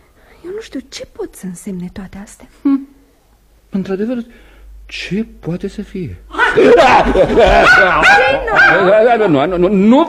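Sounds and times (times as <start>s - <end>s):
speech: 0.6s - 2.8s, 3.8s - 10.0s
laughter: 6.3s - 9.3s
dog barking and yipping: 7.4s - 9.0s.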